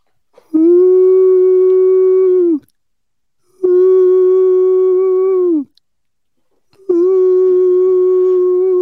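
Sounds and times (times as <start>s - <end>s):
person imitating owl hoots: 0.5s - 2.7s, 3.5s - 5.8s, 6.8s - 8.8s.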